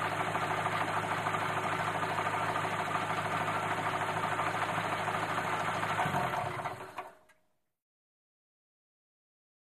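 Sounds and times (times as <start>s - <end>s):
antique Buick engine idling: 0.0s - 7.1s.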